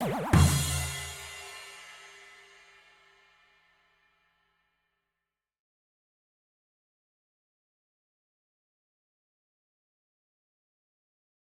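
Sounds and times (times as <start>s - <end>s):
drum rimshot sting: 0.0s - 2.4s.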